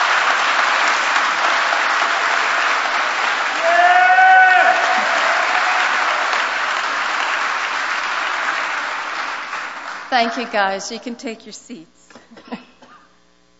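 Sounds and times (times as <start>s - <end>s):
audience applause: 0.0s - 10.7s
voice cheering: 2.0s - 6.6s
speech: 10.2s - 12.0s.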